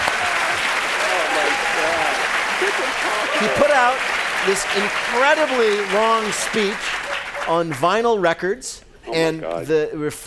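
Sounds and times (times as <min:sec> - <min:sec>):
applause: 0:00.0 - 0:08.0
speech: 0:03.4 - 0:10.2.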